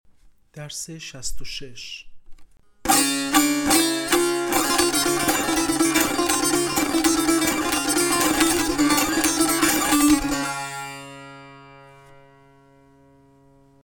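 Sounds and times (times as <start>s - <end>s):
tanbur practice: 2.8s - 13.3s.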